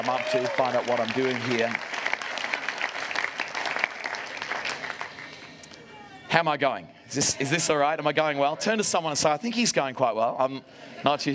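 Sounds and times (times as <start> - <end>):
speech: 0.0 - 2.0, 6.3 - 11.3
audience clapping: 0.0 - 5.7.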